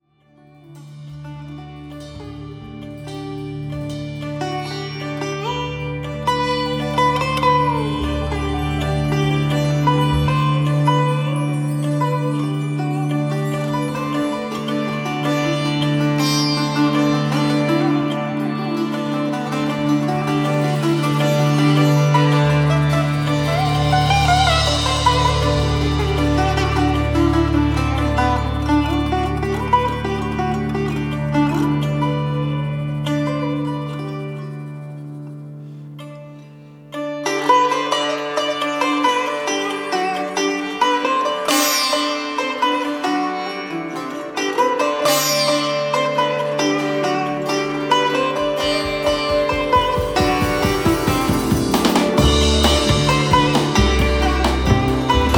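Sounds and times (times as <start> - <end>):
blues music: 0.5 - 55.3.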